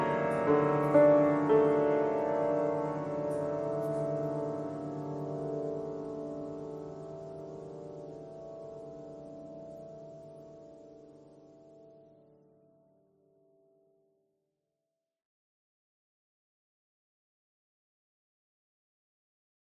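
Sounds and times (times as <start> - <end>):
piano thread noise: 0.0 - 5.8.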